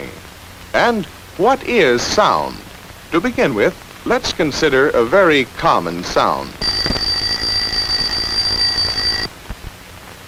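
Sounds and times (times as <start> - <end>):
speech: 0.7 - 7.0
alarm clock bell ringing: 6.6 - 9.3.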